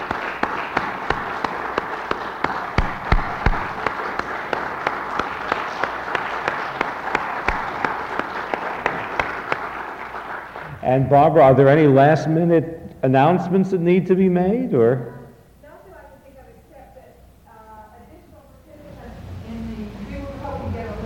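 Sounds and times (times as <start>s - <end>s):
audience applause: 0.0s - 10.8s
speech: 10.9s - 15.2s.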